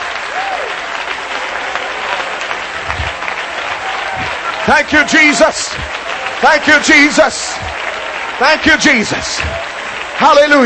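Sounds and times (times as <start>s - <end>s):
audience hand clapping: 0.0s - 10.6s
speech: 4.7s - 7.6s, 8.4s - 9.6s, 10.2s - 10.6s.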